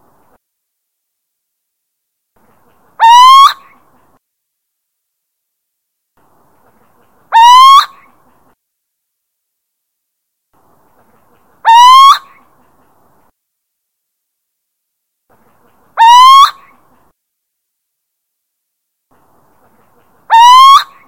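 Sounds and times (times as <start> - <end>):
little owl territorial hooting: 3.0 - 3.7, 7.3 - 8.1, 11.6 - 12.4, 16.0 - 16.7, 20.3 - 21.0.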